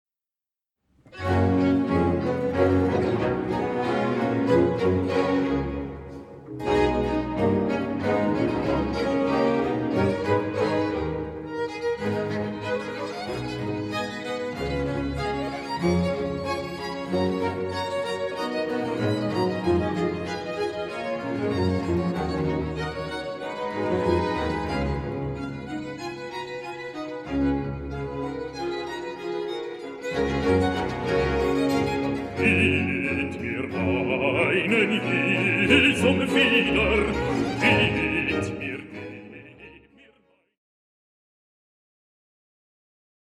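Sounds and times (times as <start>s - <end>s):
orchestra playing live: 1.1s - 39.6s
person singing an aria: 32.3s - 40.1s.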